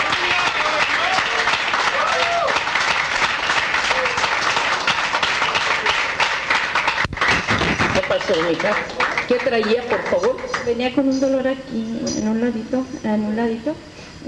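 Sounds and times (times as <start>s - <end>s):
loud applause: 0.0s - 10.7s
speech: 8.4s - 14.2s.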